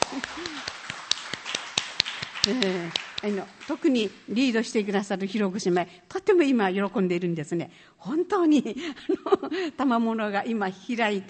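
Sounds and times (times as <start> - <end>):
scattered hand claps from a group: 0.0 - 4.2
speech: 2.4 - 11.2.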